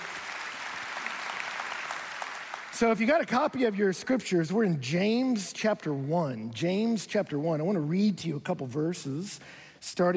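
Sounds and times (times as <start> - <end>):
audience clapping: 0.0 - 3.8
speech: 2.8 - 10.1.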